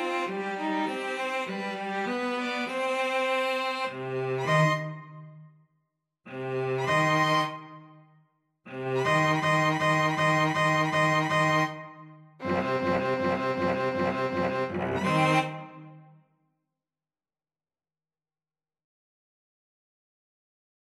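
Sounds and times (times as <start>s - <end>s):
string trio playing: 0.0s - 5.0s, 6.3s - 7.8s, 8.7s - 16.0s.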